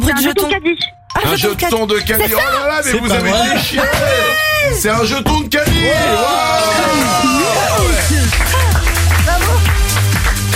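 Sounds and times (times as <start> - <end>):
speech: 0.2 - 10.5
people applauding themselves: 6.4 - 10.5.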